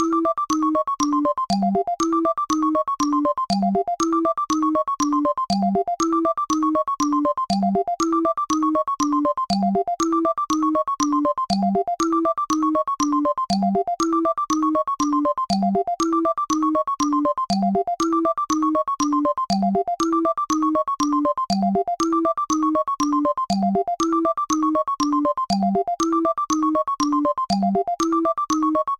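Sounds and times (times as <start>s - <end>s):
ringtone: 0.0s - 28.9s.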